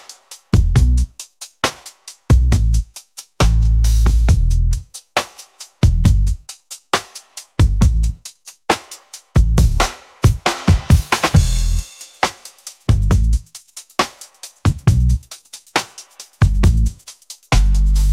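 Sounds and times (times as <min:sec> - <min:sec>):
garage bass music: 0:00.6 - 0:01.2, 0:02.3 - 0:04.9, 0:05.8 - 0:06.4, 0:07.6 - 0:08.2, 0:09.4 - 0:11.9, 0:12.9 - 0:13.5, 0:14.7 - 0:15.3, 0:16.4 - 0:18.1.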